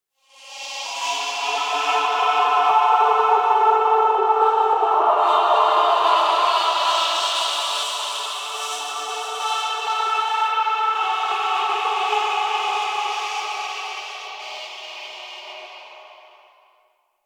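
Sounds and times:
music: 0.2s - 17.2s.

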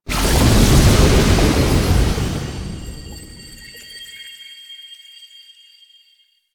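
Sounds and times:
door dissolve stinger: 0.1s - 3.7s.

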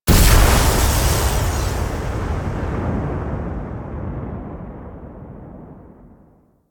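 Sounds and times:
energy strike end: 0.1s - 3.8s.

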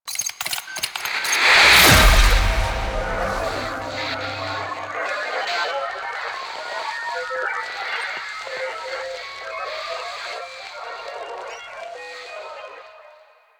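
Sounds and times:
title card end music sting: 1.5s - 5.2s.

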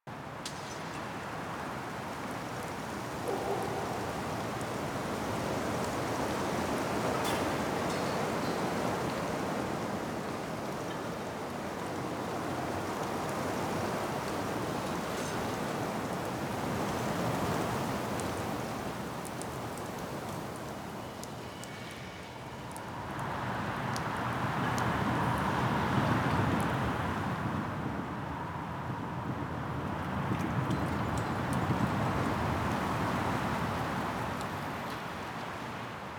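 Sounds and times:
large winter exterior ambience: 0.1s - 36.1s.

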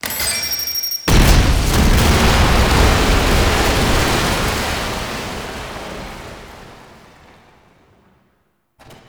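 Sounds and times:
mineshaft explosion: 1.1s - 8.2s.

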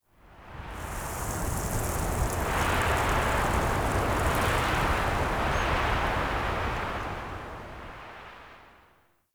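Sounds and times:
wind gust on a beach: 0.8s - 7.1s.

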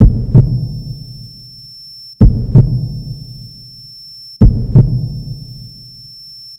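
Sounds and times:
beat ringtone: 0.0s - 1.2s, 2.2s - 3.6s, 4.4s - 5.8s.

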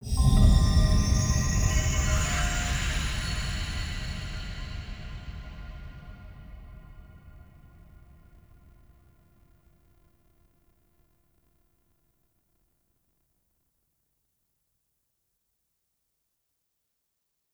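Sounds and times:
musical stinger: 0.0s - 8.3s.

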